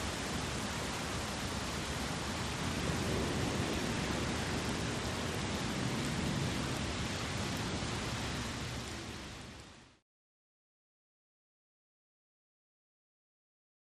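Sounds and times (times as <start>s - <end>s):
thunderstorm outdoors: 0.1s - 9.7s.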